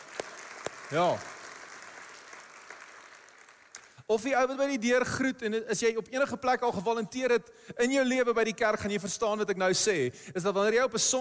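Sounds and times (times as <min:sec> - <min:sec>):
audience clapping: 0:00.0 - 0:04.1
speech: 0:00.9 - 0:01.3, 0:04.1 - 0:11.2.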